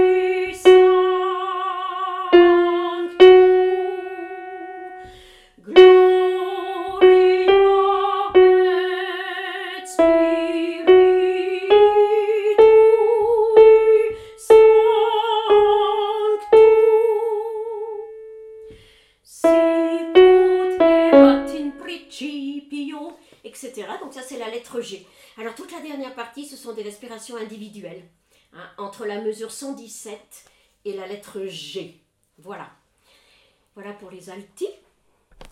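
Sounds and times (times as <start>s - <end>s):
alto singing: 0.0s - 18.6s, 19.4s - 22.3s.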